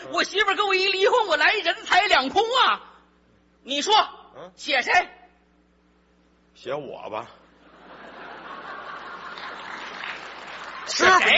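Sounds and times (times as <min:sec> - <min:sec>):
speech: 0:00.1 - 0:02.9, 0:03.6 - 0:05.2, 0:06.6 - 0:07.4, 0:10.9 - 0:11.3
laughter: 0:07.6 - 0:11.3
audience applause: 0:08.5 - 0:11.3.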